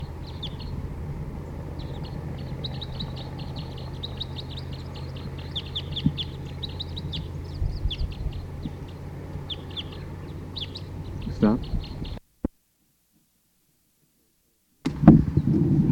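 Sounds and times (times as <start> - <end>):
dense chorus of wild birds calling: 0.0 - 12.2
low rumble: 0.0 - 12.2, 14.9 - 15.8.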